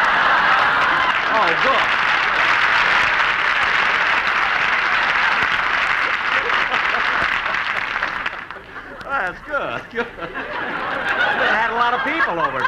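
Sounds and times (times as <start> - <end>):
audience applause: 0.0 - 12.6
laughter: 0.0 - 12.6
speech: 1.4 - 2.0, 9.9 - 10.4.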